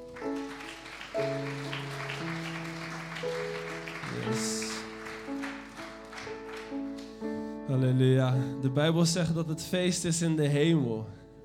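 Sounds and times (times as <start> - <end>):
audience clapping: 0.0 - 7.6
held keyboard chords: 0.0 - 11.4
speech: 7.8 - 11.2.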